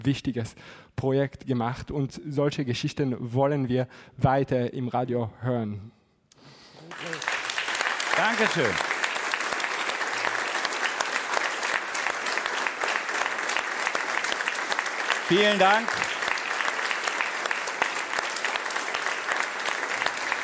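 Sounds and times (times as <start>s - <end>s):
speech: 0.0s - 6.0s, 8.2s - 8.9s, 15.3s - 16.1s
audience applause: 6.9s - 20.4s.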